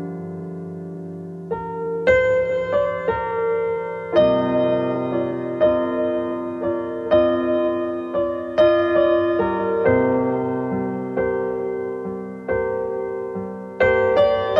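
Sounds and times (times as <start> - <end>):
piano music tuned to 432 Hz: 0.0 - 14.5.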